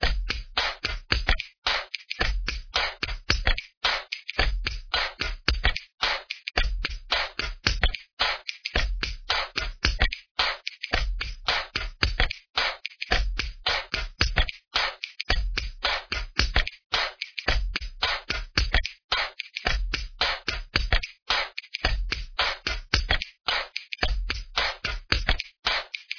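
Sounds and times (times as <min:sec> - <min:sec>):
breakbeat drums: 0:00.0 - 0:26.1.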